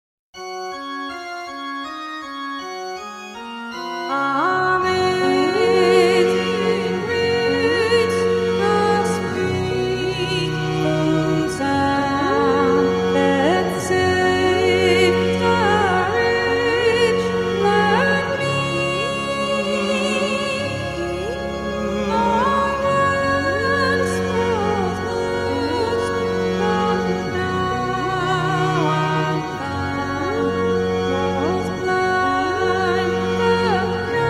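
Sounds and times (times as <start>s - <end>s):
vocaloid synthesized singing voice: 4.0s - 34.2s.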